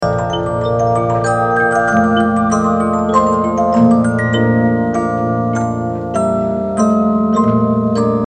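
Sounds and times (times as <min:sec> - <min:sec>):
Polyphon music box with bass: 0:00.0 - 0:08.2.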